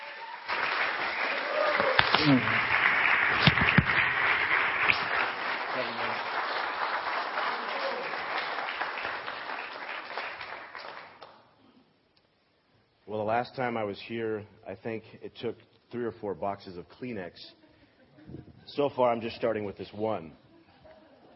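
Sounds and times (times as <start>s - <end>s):
crowd applauding welcoming a speaker: 0.0s - 11.4s
crowd cheering and shouting: 1.3s - 2.6s
speech: 2.2s - 3.7s, 13.3s - 17.6s, 18.3s - 20.4s.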